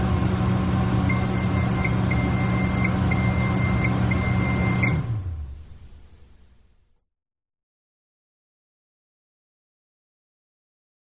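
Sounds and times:
microwave: 0:00.0 - 0:06.7.

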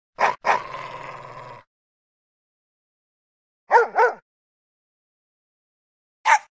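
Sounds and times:
dog barking: 0:00.2 - 0:00.7, 0:03.7 - 0:04.2, 0:06.2 - 0:06.5.

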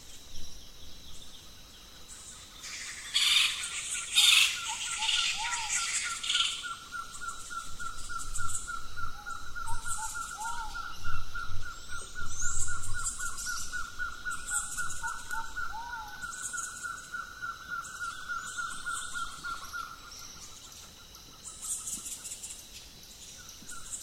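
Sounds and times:
birds in the rainforest by day at Arenal volcano: 0:00.0 - 0:24.0.

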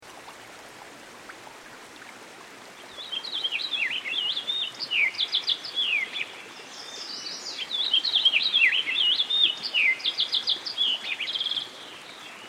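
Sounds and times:
American goldfinch singing: 0:03.0 - 0:11.7.

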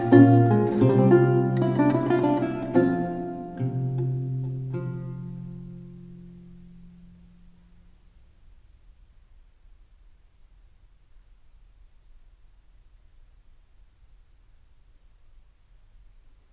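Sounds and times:
galliard on lute: 0:00.0 - 0:07.9.

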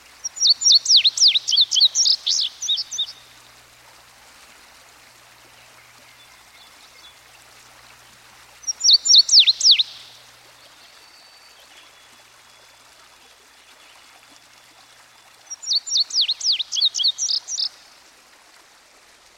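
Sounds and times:
stream flowing: 0:00.0 - 0:19.3
Indigo Bunting singing: 0:00.2 - 0:03.4, 0:08.0 - 0:17.8
songbirds singing by a stream: 0:00.2 - 0:03.5, 0:05.5 - 0:17.8.

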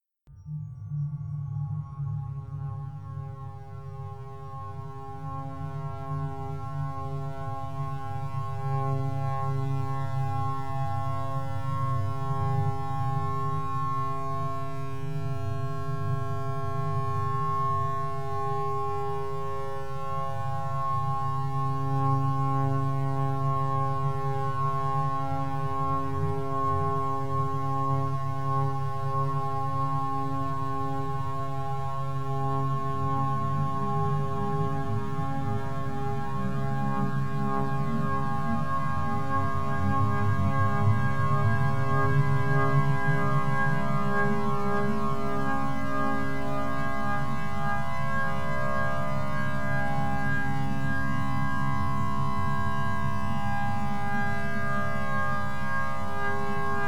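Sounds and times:
drone: 0:00.3 - 0:56.8.

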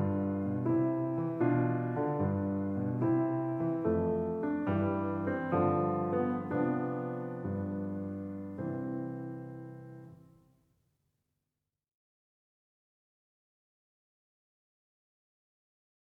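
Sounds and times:
piano sonatina: 0:00.0 - 0:10.4.

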